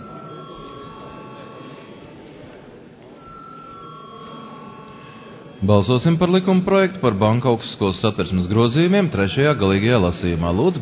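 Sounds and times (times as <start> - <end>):
parliament chamber bell ringing: 0.0 - 1.8, 3.2 - 5.4
speech: 5.6 - 10.7.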